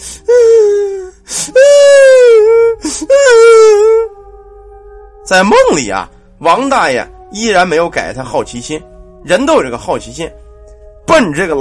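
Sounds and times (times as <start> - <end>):
woman wailing and crying: 0.2 - 4.2
speech: 5.3 - 10.4, 11.1 - 11.5.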